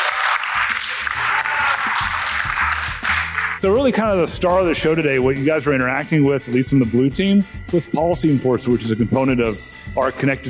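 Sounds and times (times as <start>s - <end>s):
scattered cheers and shouts: 0.0s - 3.3s
crowd clapping: 0.0s - 3.8s
speech: 3.6s - 10.4s.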